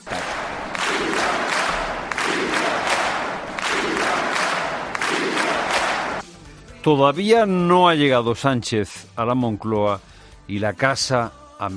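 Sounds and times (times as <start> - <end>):
crowd chanting in support of prisoners: 0.0 - 6.2
speech: 6.8 - 11.7.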